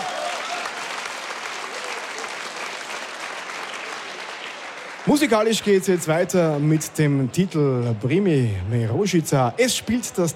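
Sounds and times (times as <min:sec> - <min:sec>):
audience applause: 0:00.0 - 0:10.3
speech: 0:05.0 - 0:10.3.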